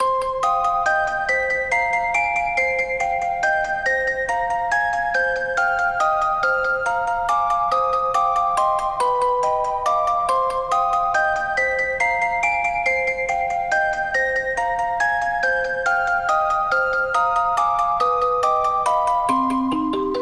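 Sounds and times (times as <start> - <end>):
music box lullaby: 0.0 - 20.1.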